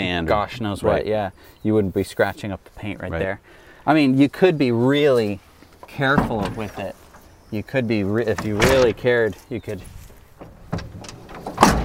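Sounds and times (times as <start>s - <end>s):
speech: 0.2s - 10.0s
lighter clunks and rattles: 5.8s - 7.3s, 8.3s - 9.2s, 9.8s - 11.8s
pickup truck compartment door slam: 8.4s - 9.1s, 10.4s - 11.8s.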